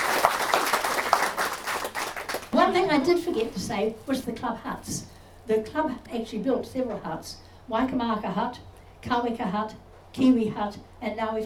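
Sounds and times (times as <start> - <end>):
audience applause for a presenter at a club history talk: 0.0 - 2.6
speech: 2.7 - 11.4.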